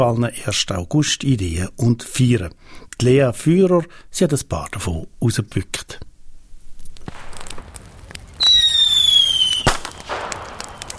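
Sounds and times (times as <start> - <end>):
speech: 0.0 - 6.1
fireworks exploding: 7.0 - 10.9.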